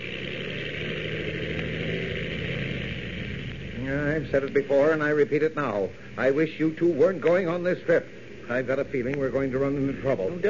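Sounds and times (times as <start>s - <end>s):
plane engine roaring: 0.0s - 6.2s
speech: 3.9s - 10.4s.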